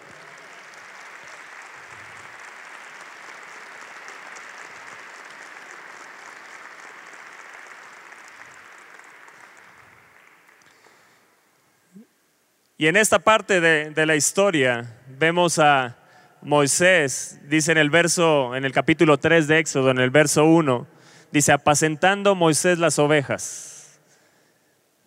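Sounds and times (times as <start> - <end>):
crowd clapping: 0.0 - 11.4
speech: 12.8 - 23.7.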